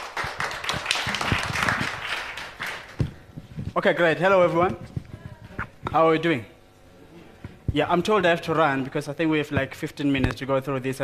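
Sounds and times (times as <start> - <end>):
audience applause: 0.0 - 3.1
speech: 3.8 - 4.9, 5.9 - 6.5, 7.7 - 11.0.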